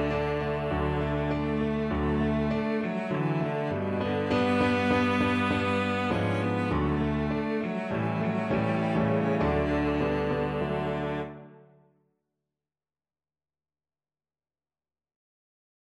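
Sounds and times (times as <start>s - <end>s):
violoncello: 0.0s - 11.8s.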